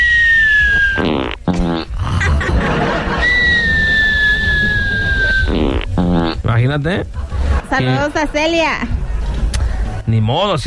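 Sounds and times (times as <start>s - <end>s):
comic fart noises: 0.0s - 6.6s
laughter: 2.1s - 5.5s, 7.0s - 8.1s
speech: 6.6s - 8.9s, 10.1s - 10.6s.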